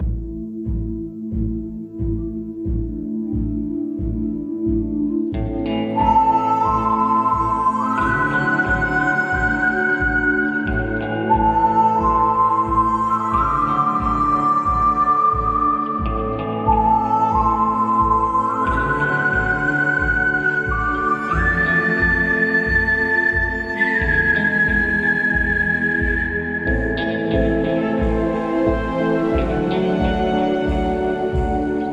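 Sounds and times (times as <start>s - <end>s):
western daytime ambient loop: 0.0s - 31.9s.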